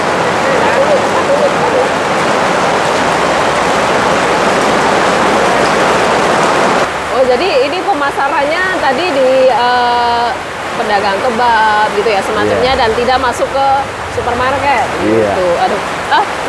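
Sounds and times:
heavy rain: 0.0 - 16.4
speech: 8.2 - 9.9, 10.9 - 16.4.

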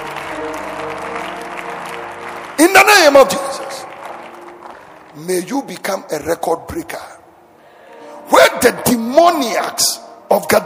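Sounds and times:
audience clapping: 0.0 - 5.6
speech: 2.6 - 3.6, 5.2 - 7.1, 8.6 - 10.6.

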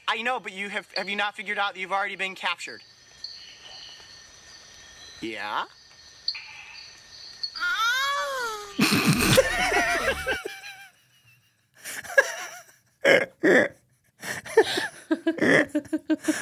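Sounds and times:
speech: 0.1 - 3.0, 5.2 - 5.8, 13.0 - 13.8, 15.3 - 16.4
puffed-up frog crying out and screaming: 7.6 - 10.4
laughter: 8.8 - 11.0, 11.8 - 13.7, 14.4 - 16.4.

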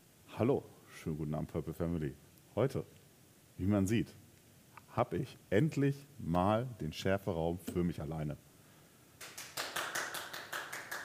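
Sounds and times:
speech: 0.4 - 3.0, 3.6 - 4.2, 5.0 - 8.4
slow quiet clapping from the control room of a streaming studio: 9.2 - 11.0.

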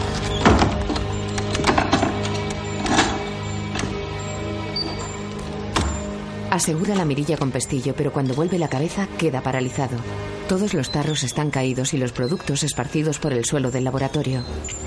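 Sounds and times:
wooden door being shut: 0.2 - 4.0, 4.8 - 6.1
speech: 6.5 - 14.8.

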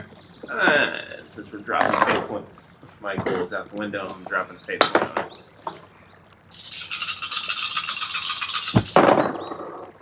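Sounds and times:
speech: 0.5 - 5.8
handful of dice rattling and landing with a clatter: 6.5 - 9.7.

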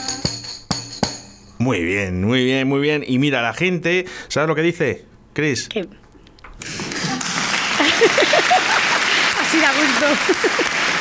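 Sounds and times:
speech: 1.6 - 6.0, 10.0 - 10.9
audience clapping along: 6.6 - 10.9
laughter: 7.0 - 10.9.

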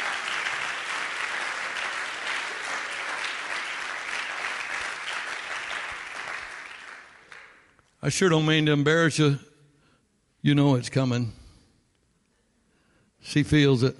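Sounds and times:
crowd clapping: 0.0 - 7.9
speech: 8.0 - 9.5, 10.4 - 11.4, 13.2 - 13.9.

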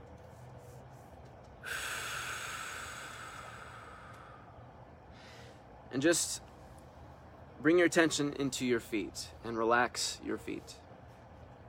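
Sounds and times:
deep breath taken during a guided meditation: 1.6 - 5.7
speech: 5.9 - 6.5, 7.6 - 10.8.

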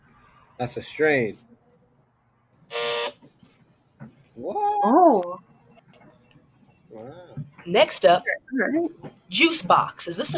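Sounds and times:
speech: 0.6 - 1.5, 4.4 - 5.5, 6.9 - 10.3
game show buzzer: 2.7 - 3.2.

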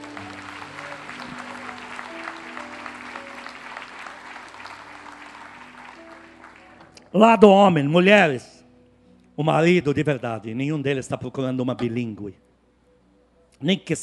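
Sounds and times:
audience applauding: 0.0 - 7.0
speech: 7.1 - 8.5, 9.4 - 12.4, 13.6 - 14.0.

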